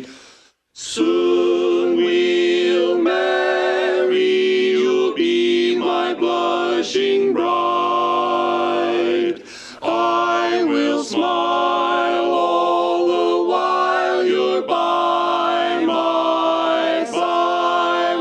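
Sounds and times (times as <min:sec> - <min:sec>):
tenor singing in barbershop quartet: 0:00.8 - 0:18.1.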